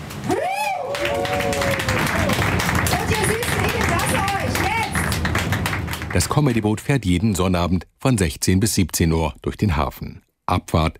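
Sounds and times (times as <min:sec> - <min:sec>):
audience applause on a harbor boat: 0:00.0 - 0:06.8
speech: 0:06.2 - 0:10.9.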